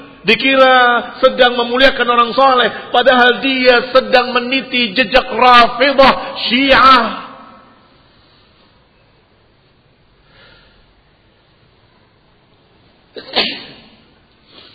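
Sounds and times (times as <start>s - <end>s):
speech: 0.2s - 7.2s
sneeze: 13.2s - 14.7s.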